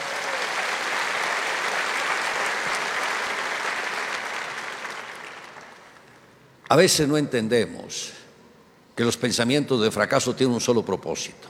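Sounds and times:
audience applause: 0:00.0 - 0:06.1
speech: 0:06.7 - 0:08.2, 0:09.0 - 0:11.4.

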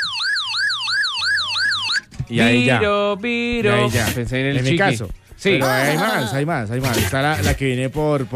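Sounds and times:
custom phone notification tone imitating an emergency siren: 0:00.0 - 0:02.1
speech: 0:02.3 - 0:08.3.

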